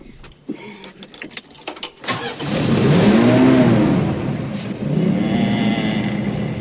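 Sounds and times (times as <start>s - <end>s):
keys jingling: 0.0s - 2.0s
car engine cranking, revving and idling: 2.0s - 6.6s.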